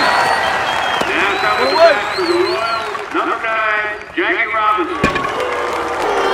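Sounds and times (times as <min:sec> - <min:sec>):
crowd applauding in the stands at a baseball game: 0:00.0 - 0:06.3
people talking: 0:01.0 - 0:05.2
sharp knocks: 0:05.0 - 0:05.8.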